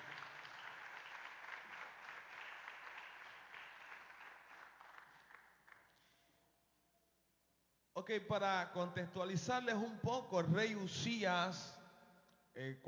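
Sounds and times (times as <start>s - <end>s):
audience applause: 0.0s - 5.9s
speech: 8.0s - 11.8s, 12.6s - 12.8s.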